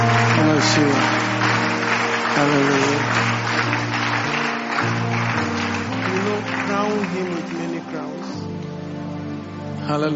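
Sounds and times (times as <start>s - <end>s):
audience clapping: 0.0s - 8.9s
speech: 0.1s - 1.5s, 2.4s - 3.9s, 6.8s - 8.3s, 9.9s - 10.1s.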